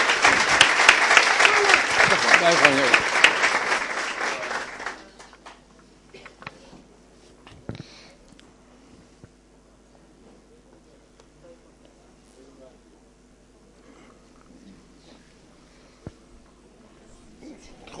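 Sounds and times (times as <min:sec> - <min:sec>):
group of people clapping: 0:00.0 - 0:06.6.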